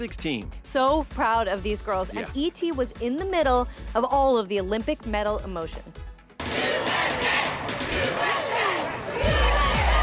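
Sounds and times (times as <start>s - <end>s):
speech: 0.0s - 6.0s
large crowd cheering and roaring: 6.4s - 10.0s.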